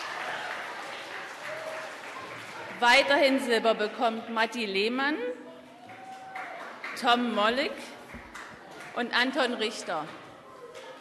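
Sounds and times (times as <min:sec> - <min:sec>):
audience applause for silver medal winners at an award ceremony: 0:00.0 - 0:03.9, 0:05.8 - 0:07.3
speech: 0:02.8 - 0:05.5, 0:07.0 - 0:07.9, 0:09.0 - 0:10.2.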